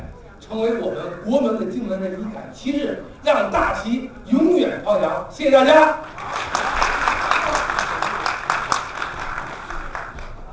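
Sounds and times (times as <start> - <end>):
speech: 0.5 - 6.3
audience applause after a speech: 6.0 - 10.5.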